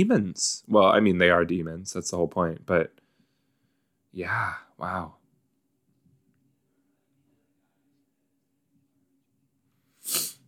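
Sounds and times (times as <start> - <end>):
speech: 0.0 - 3.0, 4.1 - 5.2
person sniffling: 9.9 - 10.4.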